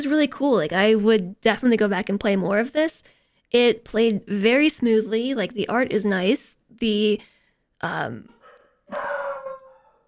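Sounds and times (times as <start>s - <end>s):
speech: 0.0s - 9.2s
puppy barking: 8.3s - 10.0s.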